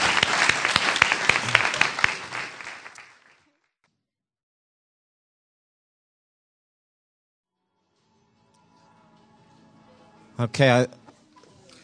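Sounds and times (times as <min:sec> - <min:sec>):
audience clapping: 0:00.0 - 0:03.6
speech: 0:10.4 - 0:11.0.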